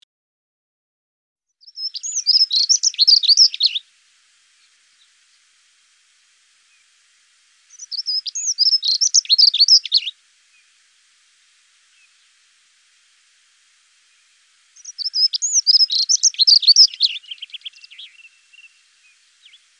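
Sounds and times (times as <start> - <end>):
dunnock song: 1.6 - 5.6, 7.6 - 10.8, 11.8 - 12.4, 14.0 - 19.7.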